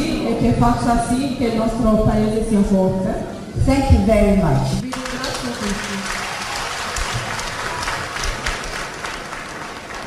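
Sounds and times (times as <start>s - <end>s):
speech: 0.3s - 4.8s
audience clapping: 4.8s - 10.0s.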